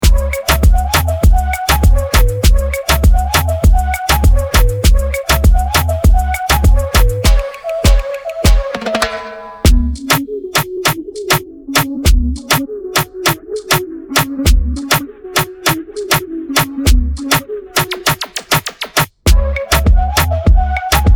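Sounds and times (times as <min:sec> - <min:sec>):
instrumental music: 0:00.0 - 0:21.1.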